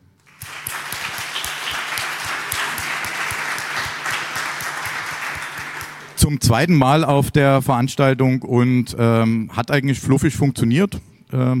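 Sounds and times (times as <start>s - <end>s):
audience applause: 0.2s - 6.2s
speech: 6.2s - 11.5s.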